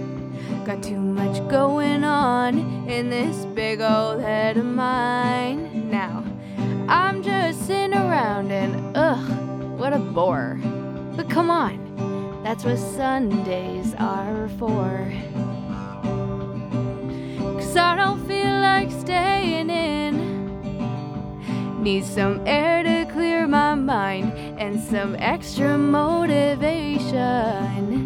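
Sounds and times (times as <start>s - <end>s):
Canadian country song sung by a woman in English: 0.0s - 28.0s.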